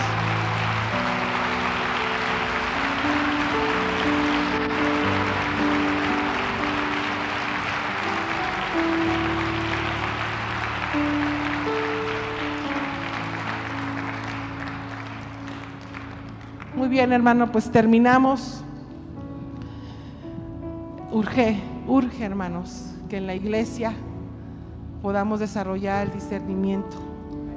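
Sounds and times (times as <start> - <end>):
audience applauding: 0.0 - 16.8
sustained low keyboard or organ chords: 0.0 - 27.5
speech: 16.9 - 18.6, 21.2 - 24.1, 25.0 - 27.1.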